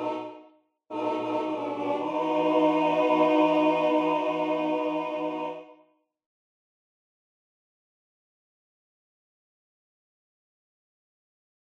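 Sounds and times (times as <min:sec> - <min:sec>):
tenor singing: 0:00.0 - 0:05.7.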